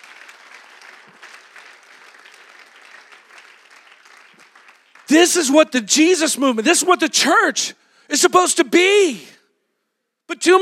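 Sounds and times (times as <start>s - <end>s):
audience clapping hands: 0.0s - 6.0s
speech: 5.1s - 9.4s, 10.3s - 10.6s.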